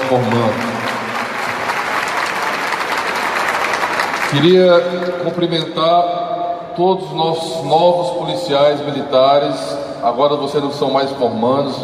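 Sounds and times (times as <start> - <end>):
applause at a graduation ceremony: 0.0 - 5.6
speech: 0.1 - 0.7, 4.3 - 6.2, 6.8 - 11.8.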